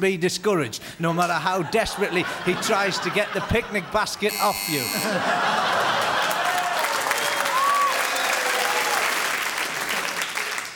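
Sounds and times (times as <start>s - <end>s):
speech: 0.0s - 6.0s
laughter: 1.4s - 7.1s
applause: 5.7s - 10.7s.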